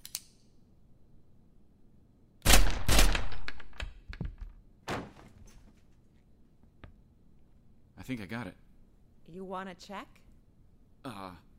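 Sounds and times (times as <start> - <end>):
gunshots fired through a door: 2.5 - 3.7
speech: 8.0 - 8.7, 9.3 - 10.2, 11.0 - 11.5.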